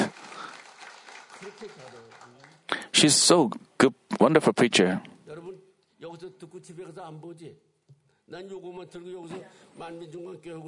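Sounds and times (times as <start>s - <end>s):
audience clapping hands: 0.0s - 3.0s
speech: 1.4s - 5.1s, 6.1s - 7.7s, 8.3s - 10.6s.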